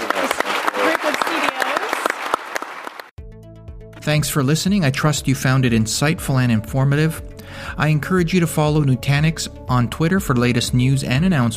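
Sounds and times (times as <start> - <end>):
audience applause: 0.0 - 3.2
speech: 4.0 - 11.5.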